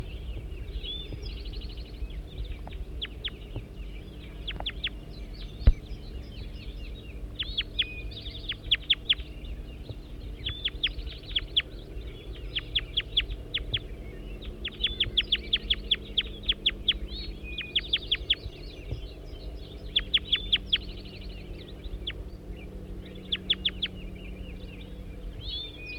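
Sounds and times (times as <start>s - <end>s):
high chirping bird calls: 0.0s - 25.9s
low rumble: 0.0s - 25.9s.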